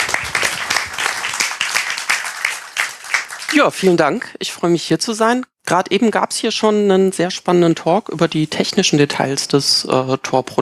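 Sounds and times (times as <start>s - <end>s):
audience applause: 0.0s - 3.9s
speech: 3.5s - 10.6s.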